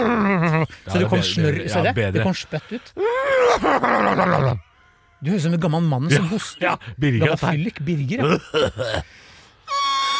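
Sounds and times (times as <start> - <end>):
person imitating a horse neighing: 0.0 - 0.7, 3.0 - 5.2, 9.7 - 10.1
speech: 0.9 - 9.3.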